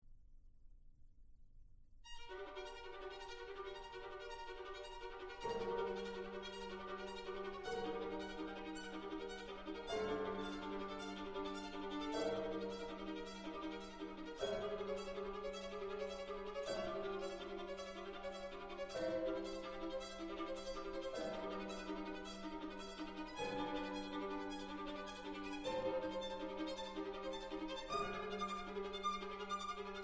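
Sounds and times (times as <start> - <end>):
violin concerto: 2.1 - 30.0.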